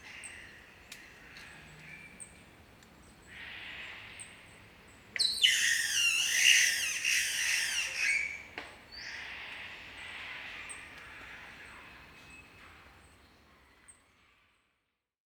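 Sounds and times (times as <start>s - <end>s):
Green Catbird Ailuroedus crassirostris calling: 5.2s - 8.5s.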